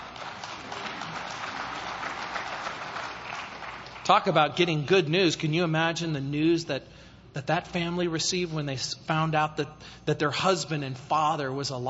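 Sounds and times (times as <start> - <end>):
audience clapping: 0.0 - 4.5
speech: 4.1 - 11.8.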